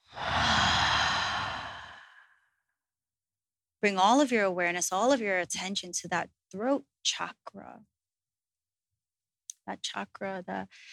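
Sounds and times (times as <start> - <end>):
deep breath exhaled during guided meditation: 0.0 - 2.4
speech: 3.8 - 7.9, 9.7 - 10.9.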